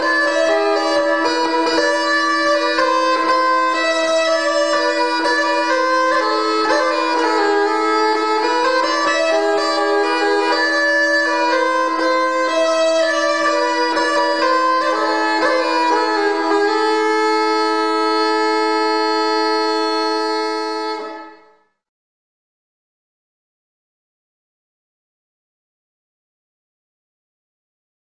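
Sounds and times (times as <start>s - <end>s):
Swedish bagpipes playing a folk dance: 0.0s - 21.4s.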